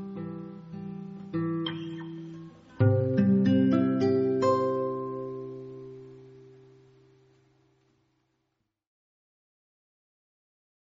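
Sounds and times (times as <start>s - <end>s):
guitar: 0.0s - 8.1s.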